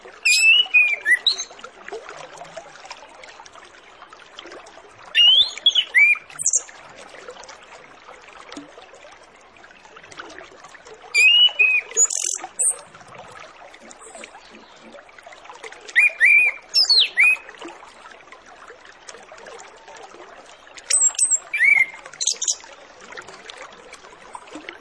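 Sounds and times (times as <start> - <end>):
orange-headed thrush song: 0.2 - 1.5, 5.2 - 6.6, 11.2 - 12.8, 15.9 - 17.4, 20.9 - 22.6.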